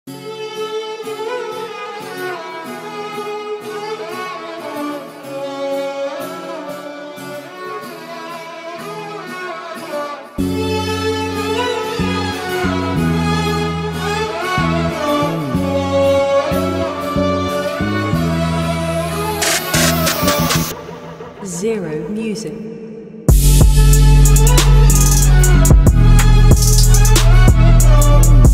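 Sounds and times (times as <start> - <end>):
Turkish arabesk music beat: 10.4 - 28.5.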